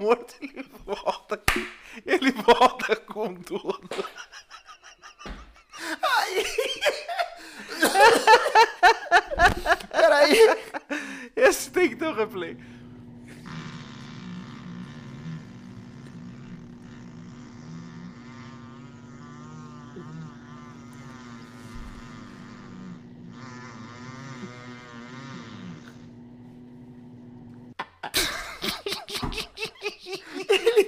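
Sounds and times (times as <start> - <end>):
speech: 0.0 - 1.6
laughter: 0.2 - 12.4, 27.8 - 30.8
long fart: 11.6 - 29.6.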